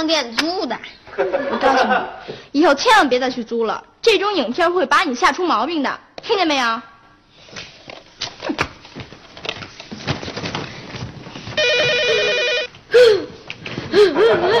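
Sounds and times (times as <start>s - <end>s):
speech: 0.0s - 6.9s
laughter: 1.1s - 2.3s, 14.0s - 14.5s
telephone ringing: 11.6s - 12.8s.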